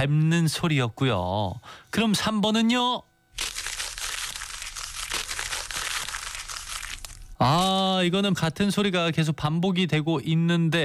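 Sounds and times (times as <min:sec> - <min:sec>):
speech: 0:00.0 - 0:03.5, 0:07.4 - 0:10.8
paper being rustled and crumpled: 0:03.4 - 0:07.9.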